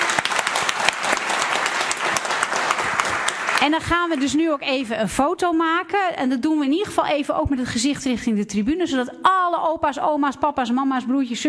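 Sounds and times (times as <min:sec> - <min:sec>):
audience applause: 0:00.0 - 0:04.4
speech: 0:03.6 - 0:11.4.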